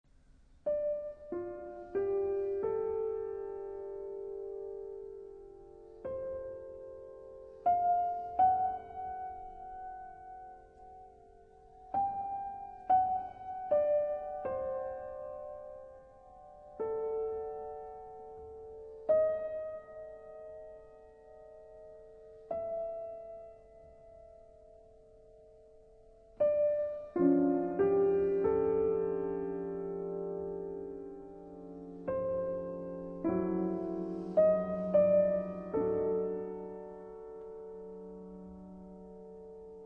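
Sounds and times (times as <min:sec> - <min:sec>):
piano piece: 0:00.1 - 0:39.8.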